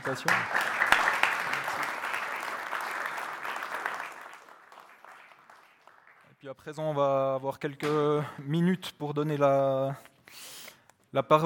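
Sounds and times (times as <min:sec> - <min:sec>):
speech: 0:00.0 - 0:00.6, 0:06.5 - 0:10.5, 0:11.1 - 0:11.4
audience applause: 0:00.0 - 0:06.3.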